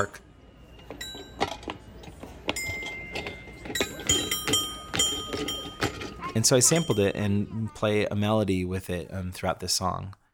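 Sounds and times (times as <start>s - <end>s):
speech: 0.0s - 0.2s, 6.4s - 10.2s
bell tones from playground floor panels: 0.0s - 7.5s.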